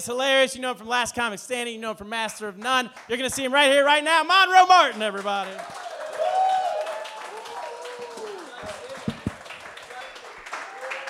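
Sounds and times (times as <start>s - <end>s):
speech: 0.0s - 5.9s
audience applause for comedian: 4.8s - 11.0s
crowd cheering and whooping: 5.6s - 9.6s, 10.5s - 11.0s.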